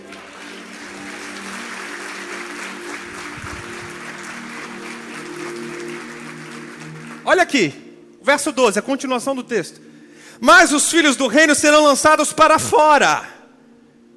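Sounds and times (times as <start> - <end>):
audience applauding: 0.0 - 7.7
speech: 7.3 - 13.3.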